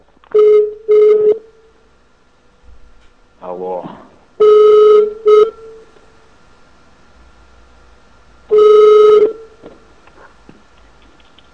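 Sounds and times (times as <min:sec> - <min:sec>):
telephone line tones as a call is placed: 0:00.3 - 0:01.5, 0:04.4 - 0:05.7, 0:08.5 - 0:09.5.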